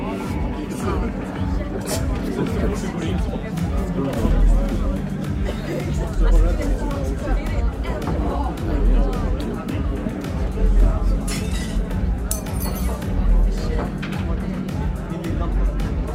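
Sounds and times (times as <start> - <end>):
babble of voices in a busy bar: 0.0 - 16.1
glasses or dishes clinking: 11.3 - 13.1.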